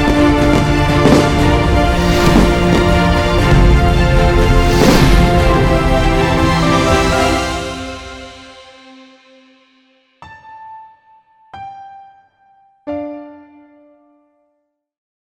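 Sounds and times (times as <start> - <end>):
epic inspirational generic music: 0.0 - 9.9.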